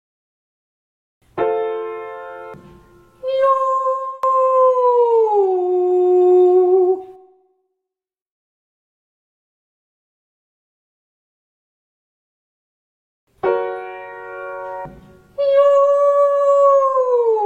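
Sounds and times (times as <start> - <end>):
ascending cry: 3.2 - 7.2, 15.4 - 17.4.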